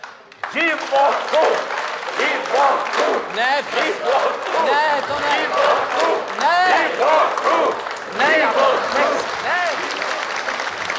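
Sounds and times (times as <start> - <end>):
audience applause at a live comedy performance: 0.0 - 10.9
speech: 0.5 - 9.8
people shouting and talking loudly: 0.6 - 9.3.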